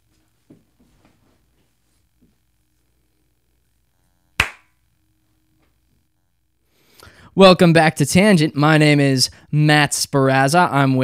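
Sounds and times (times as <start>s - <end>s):
single hand clap before recording: 4.4s - 4.7s
speech: 7.4s - 11.0s.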